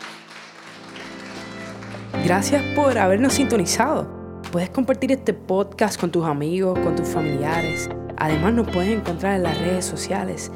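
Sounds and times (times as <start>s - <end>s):
audience applauding: 0.0s - 2.6s
speech: 2.2s - 10.5s.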